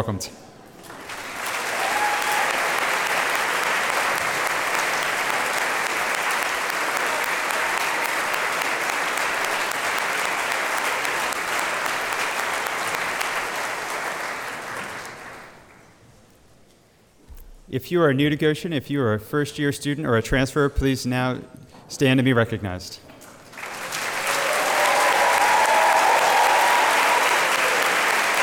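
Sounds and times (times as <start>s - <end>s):
speech: 0.0s - 0.5s, 17.7s - 23.0s
large audience applauding: 0.9s - 15.8s, 23.4s - 28.4s.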